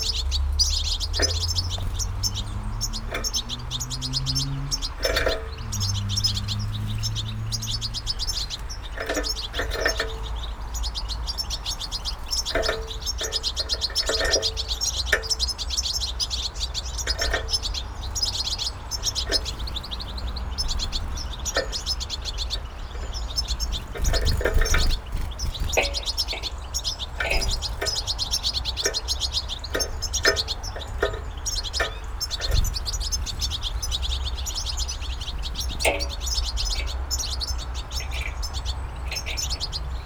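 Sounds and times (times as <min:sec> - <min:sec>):
birds at an amplified bird feeder in Burbage Valley UK: 0:00.0 - 0:40.0.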